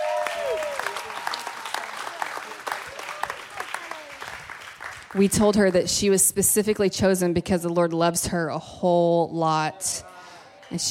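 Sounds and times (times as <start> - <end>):
round of applause: 0.0 - 5.3, 10.0 - 10.8
speech: 5.1 - 10.1.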